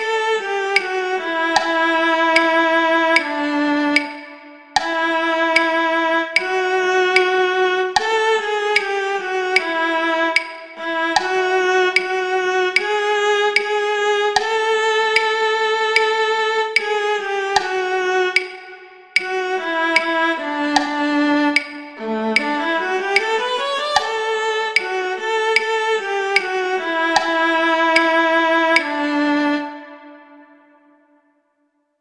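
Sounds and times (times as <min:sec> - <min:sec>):
cello duet: 0:00.0 - 0:31.1.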